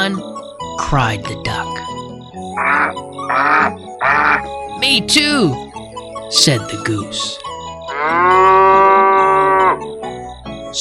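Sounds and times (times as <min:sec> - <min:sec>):
speech: 0:00.0 - 0:05.6, 0:06.3 - 0:08.5
cow mooing: 0:02.5 - 0:04.5, 0:07.9 - 0:09.8.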